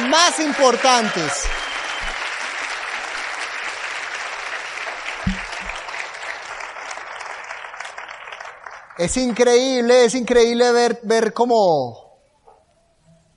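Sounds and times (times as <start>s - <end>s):
audience applause: 0.0s - 9.4s
speech: 0.1s - 1.7s, 9.0s - 12.0s.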